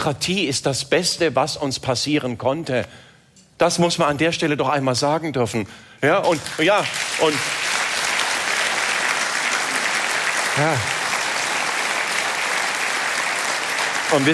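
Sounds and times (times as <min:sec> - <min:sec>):
speech: 0:00.0 - 0:07.7, 0:10.6 - 0:11.0, 0:14.1 - 0:14.3
audience applause: 0:06.3 - 0:14.3.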